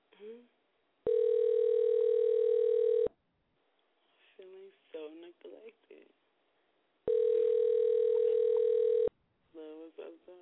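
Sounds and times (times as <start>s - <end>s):
speech: 0.2s - 0.6s
telephone ringing: 1.1s - 3.1s, 7.1s - 9.1s.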